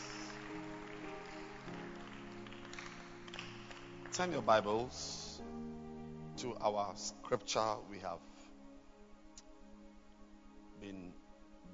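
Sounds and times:
audience clapping hands: 0.0 - 5.4
speech: 4.2 - 5.2, 6.4 - 8.3, 10.8 - 11.7.

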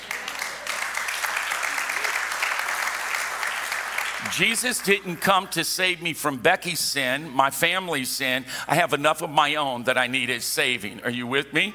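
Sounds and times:
audience applause: 0.0 - 5.2
speech: 4.2 - 11.7.

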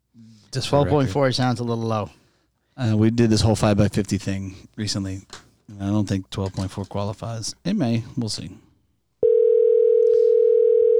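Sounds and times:
speech: 0.2 - 2.2, 2.8 - 8.7
telephone dial tone while calling a podcast caller: 9.2 - 10.9.

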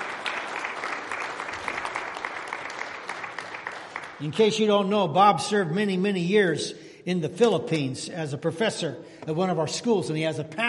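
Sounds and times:
audience round of applause: 0.0 - 4.6
speech: 4.2 - 10.6.

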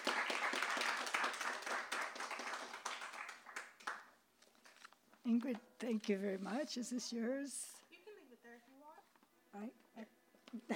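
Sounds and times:
audience round of applause: 0.0 - 4.2
speech: 5.2 - 7.8.

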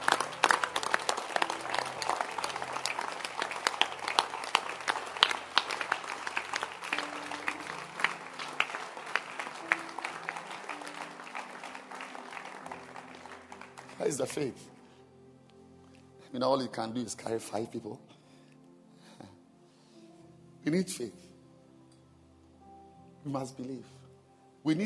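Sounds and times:
audience clapping for the Holy Spirit: 0.0 - 14.5
speech: 14.0 - 14.8, 16.4 - 18.2, 20.7 - 21.3, 23.3 - 24.0, 24.6 - 24.8.

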